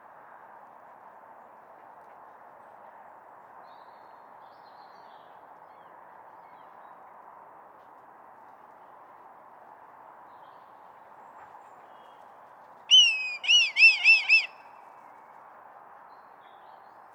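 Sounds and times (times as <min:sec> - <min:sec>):
red kite calling: 0:12.9 - 0:14.6.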